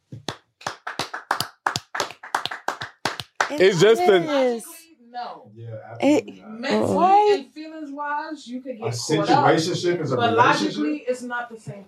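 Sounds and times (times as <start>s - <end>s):
hands clapping: 0.0s - 3.9s
speech: 3.5s - 11.8s.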